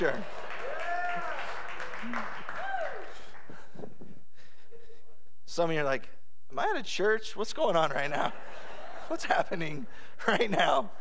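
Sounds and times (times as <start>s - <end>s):
speech: 0.0s - 0.4s, 5.6s - 10.9s
audience clapping: 0.0s - 3.8s.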